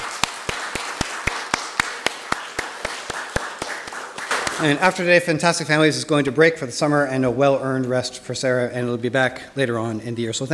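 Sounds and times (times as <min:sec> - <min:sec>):
audience applause: 0:00.0 - 0:05.0
speech: 0:04.6 - 0:10.5.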